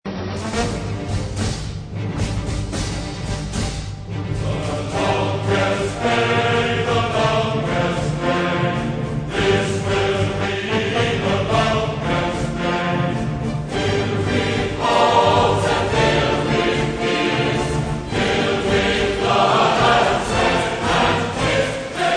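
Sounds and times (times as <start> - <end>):
chorale music: 0.7 - 22.1.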